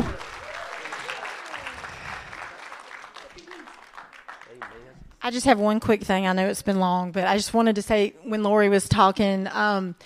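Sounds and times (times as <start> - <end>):
audience hand clapping: 0.0 - 5.0
speech: 5.3 - 10.0.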